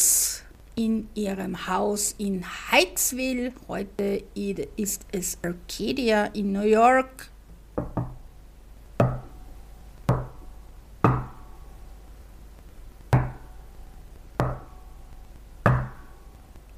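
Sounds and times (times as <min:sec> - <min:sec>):
speech: 0:00.8 - 0:08.0
sharp knocking signals on wood: 0:07.8 - 0:08.2, 0:09.0 - 0:09.3, 0:10.1 - 0:10.4, 0:11.0 - 0:11.4, 0:13.1 - 0:13.4, 0:14.4 - 0:14.7, 0:15.6 - 0:16.0.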